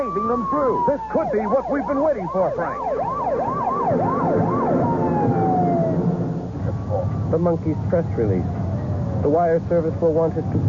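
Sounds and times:
speech: 0.0s - 4.1s, 7.3s - 8.6s, 9.2s - 10.6s
police escort siren approaching: 0.0s - 9.4s
constant rumble of traffic: 0.0s - 10.6s.

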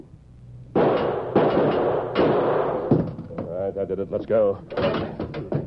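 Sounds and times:
six gun revolver gunshot blasting a lock: 0.7s - 3.2s
speech: 3.8s - 5.5s.

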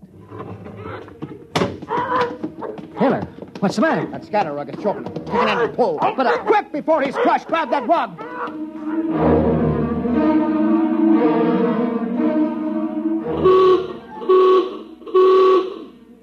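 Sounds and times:
speech: 3.0s - 9.3s
ship's general alarm blaring: 8.1s - 16.2s.

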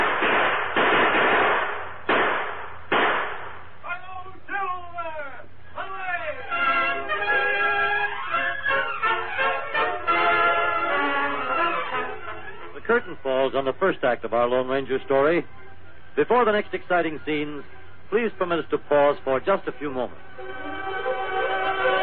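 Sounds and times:
gunfire in a Western radio drama: 0.0s - 3.7s
men talking and shouting: 3.8s - 22.0s
speech: 13.6s - 15.6s, 16.2s - 20.7s.

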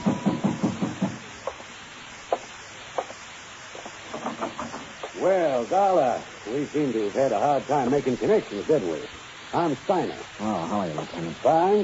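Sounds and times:
pounding on a door: 0.0s - 1.2s
speech: 5.2s - 11.8s.

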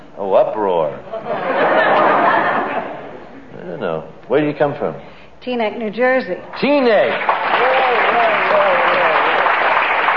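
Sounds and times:
laughter: 1.1s - 3.2s
speech: 4.4s - 7.3s
audience applause: 6.6s - 10.1s.

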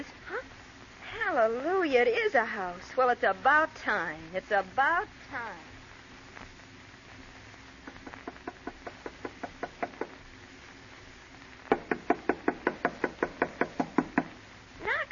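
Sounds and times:
speech: 1.4s - 5.7s
knocking on a door: 8.6s - 10.2s, 11.7s - 14.3s.

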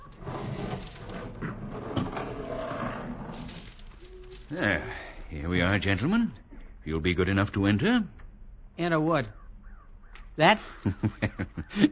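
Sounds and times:
heavy sliding door grinding open: 0.0s - 3.9s
speech: 4.5s - 8.2s, 8.8s - 9.4s, 10.4s - 11.9s
laughter: 10.6s - 11.9s.

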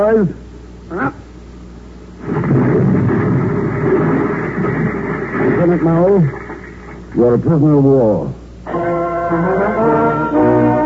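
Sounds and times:
speech: 0.0s - 1.2s, 5.7s - 6.4s, 7.2s - 10.2s
hand grenade explosion: 2.2s - 7.0s.

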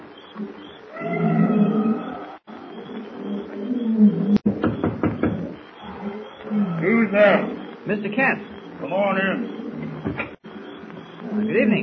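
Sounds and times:
nocturnal wild animals baying and roaring: 0.0s - 4.5s, 5.3s - 11.8s
insects humming in jungle at night: 0.0s - 11.8s
speech: 0.4s - 1.2s, 7.9s - 9.5s, 11.4s - 11.8s
sharp knocking pops: 4.4s - 5.6s.

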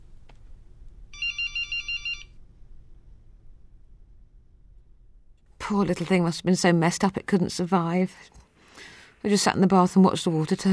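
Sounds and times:
low hum: 0.0s - 10.7s
telephone ringing with electronic trilling: 1.1s - 2.4s
speech: 5.7s - 8.4s, 9.2s - 10.7s.

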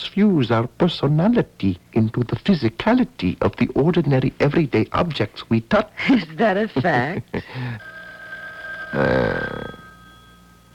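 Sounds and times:
speech: 0.2s - 7.9s, 8.9s - 9.8s
telephone ringing: 7.6s - 10.7s.

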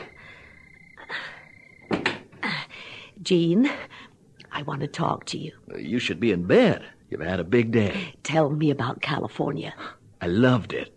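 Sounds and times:
front door opening: 1.7s - 2.4s
speech: 3.2s - 3.9s, 4.6s - 10.9s.

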